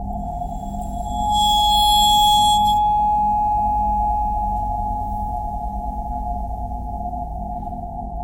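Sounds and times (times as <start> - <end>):
bowed metal vibes playing pentatonic: 0.1 - 8.1.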